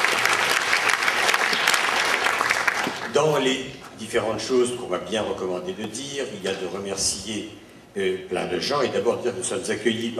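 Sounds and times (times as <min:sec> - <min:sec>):
audience applause: 0:00.0 - 0:03.2
speech: 0:03.2 - 0:10.1.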